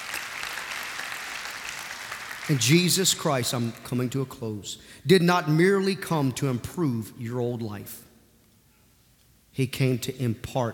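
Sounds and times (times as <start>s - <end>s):
audience clapping: 0.0s - 3.9s
speech: 2.5s - 8.1s, 9.6s - 10.7s.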